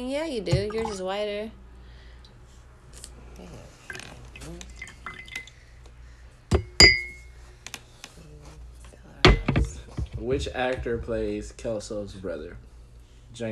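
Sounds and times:
speech: 0:00.0 - 0:01.6, 0:03.4 - 0:03.7, 0:10.2 - 0:12.7
liquid poured from a bottle into a glass: 0:03.9 - 0:05.6
glass clinks: 0:06.6 - 0:07.3.

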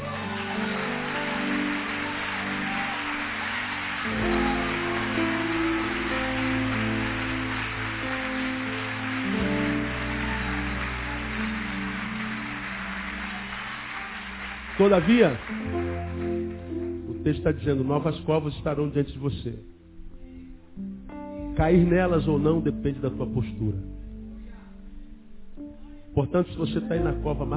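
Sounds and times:
audience applauding: 0:00.0 - 0:17.1
speech: 0:14.8 - 0:15.8, 0:17.2 - 0:19.7, 0:21.6 - 0:24.0, 0:26.2 - 0:27.5.

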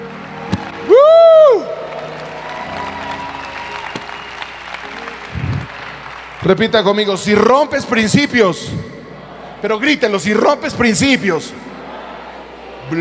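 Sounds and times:
audience applauding: 0:00.0 - 0:08.2
loud rising-and-falling whoop: 0:00.5 - 0:04.7
speech: 0:06.4 - 0:08.9, 0:09.6 - 0:11.7.

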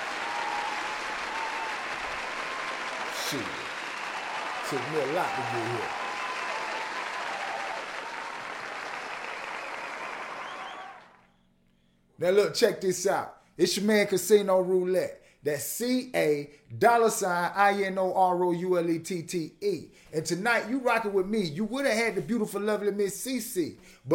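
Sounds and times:
audience applause: 0:00.0 - 0:11.2
speech: 0:03.3 - 0:03.6, 0:04.7 - 0:06.0, 0:12.2 - 0:24.1.

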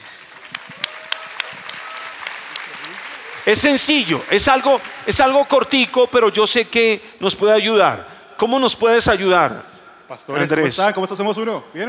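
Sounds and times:
audience applause: 0:00.0 - 0:06.0
speech: 0:03.5 - 0:11.8.

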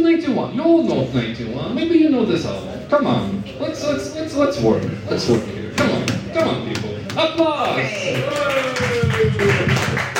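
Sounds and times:
speech: 0:00.0 - 0:08.6
audience applause: 0:07.6 - 0:10.1.

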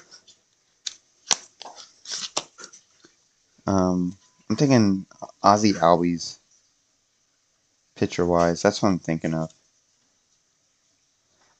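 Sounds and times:
baseball card pulled from its pack: 0:01.2 - 0:02.9
speech: 0:03.7 - 0:06.4, 0:08.0 - 0:09.6.

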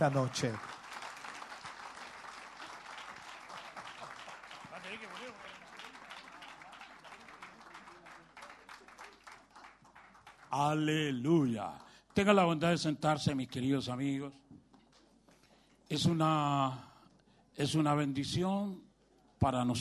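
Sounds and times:
speech: 0:00.0 - 0:00.8, 0:10.6 - 0:14.4, 0:15.9 - 0:16.9, 0:17.6 - 0:18.8, 0:19.4 - 0:19.7
audience applause: 0:00.0 - 0:11.6.

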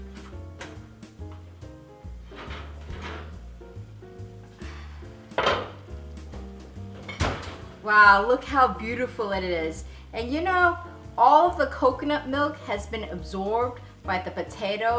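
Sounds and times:
soft music: 0:00.0 - 0:14.9
casserole dish and oven clunking and scraping: 0:02.2 - 0:03.5, 0:04.5 - 0:05.9, 0:06.9 - 0:07.8
speech: 0:07.9 - 0:14.9.

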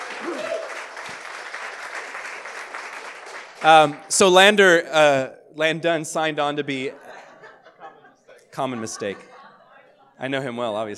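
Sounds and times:
audience applause: 0:00.0 - 0:04.2
speech: 0:03.6 - 0:07.0, 0:08.6 - 0:09.3, 0:10.2 - 0:10.9
laughter: 0:06.8 - 0:10.0.

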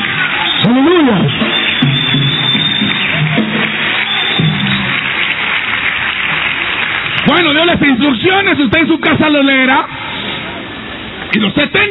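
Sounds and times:
audience applause: 0:00.0 - 0:08.5
speech: 0:07.4 - 0:10.0, 0:11.3 - 0:11.8.

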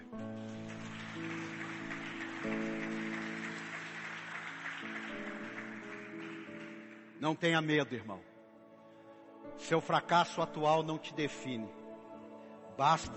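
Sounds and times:
crowd applause: 0:00.0 - 0:07.2
speech: 0:07.2 - 0:08.3, 0:09.6 - 0:11.8, 0:12.8 - 0:13.1.

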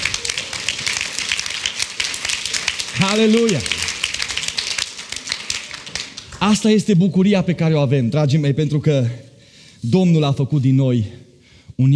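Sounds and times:
audience clapping hands: 0:00.0 - 0:06.8
speech: 0:03.0 - 0:03.8, 0:06.4 - 0:09.2, 0:09.8 - 0:11.2, 0:11.8 - 0:11.9.

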